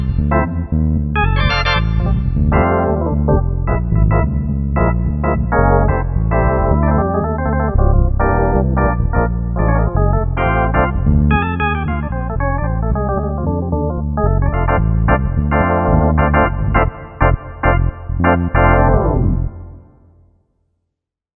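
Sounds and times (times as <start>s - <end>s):
jazz bass line on a Korg MSC-9S organ: 0.0s - 19.8s.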